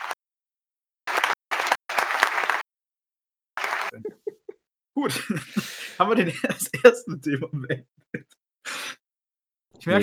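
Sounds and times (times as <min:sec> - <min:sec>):
applause: 0:01.1 - 0:02.6, 0:03.6 - 0:03.9
speech: 0:03.9 - 0:04.3, 0:05.0 - 0:08.8, 0:09.8 - 0:10.0
laughter: 0:03.9 - 0:08.4.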